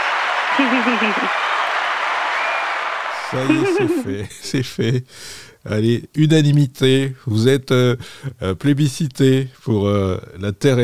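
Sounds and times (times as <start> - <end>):
applause: 0.0 - 4.1
laughter: 0.5 - 1.4, 3.2 - 5.0
speech: 0.6 - 1.5, 3.3 - 10.8.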